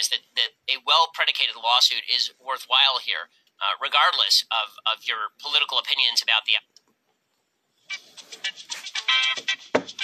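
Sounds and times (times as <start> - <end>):
speech: 0.0 - 6.7
mobile phone ringing: 7.9 - 10.0.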